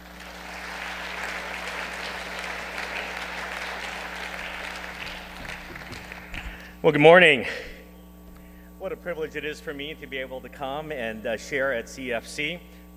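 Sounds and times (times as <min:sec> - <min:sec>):
church congregation applause welcoming a visiting reverend: 0:00.0 - 0:06.7
low hum: 0:00.0 - 0:12.9
speech: 0:06.8 - 0:07.7, 0:08.9 - 0:12.9.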